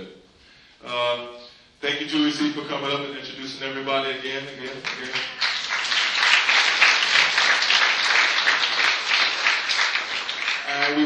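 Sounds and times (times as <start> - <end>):
speech: 2.0 - 5.5
audience applause: 4.6 - 11.0.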